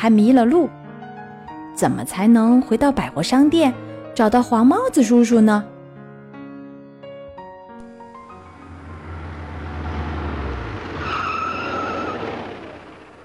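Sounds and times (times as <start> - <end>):
speech: 0.0 - 0.8, 1.8 - 5.7
bus stopping at an intersection: 7.9 - 13.2.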